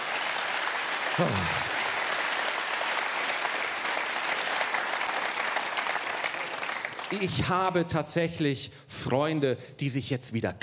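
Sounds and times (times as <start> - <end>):
audience clapping: 0.0 - 7.8
speech: 1.2 - 1.7, 7.1 - 10.6.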